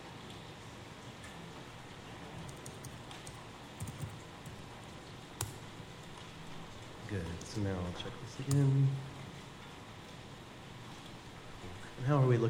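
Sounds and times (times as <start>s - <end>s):
typing on a computer keyboard: 2.3s - 4.7s
speech: 7.1s - 9.2s, 12.0s - 12.4s.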